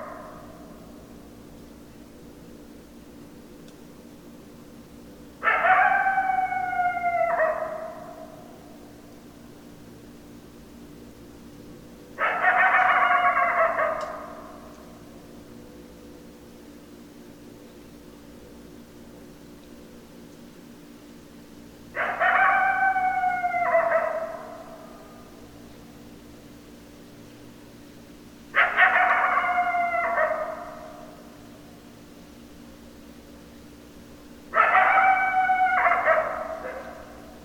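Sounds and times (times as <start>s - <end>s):
coyote howl: 0.0s - 0.7s, 5.4s - 9.1s, 12.2s - 14.9s, 21.9s - 25.4s, 28.5s - 31.4s, 34.5s - 37.4s.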